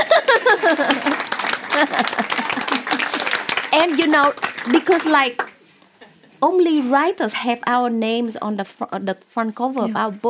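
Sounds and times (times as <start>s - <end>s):
laughter: 0.0s - 3.4s
audience applause: 0.0s - 5.6s
speech: 1.8s - 2.6s, 3.8s - 5.4s, 6.4s - 10.2s.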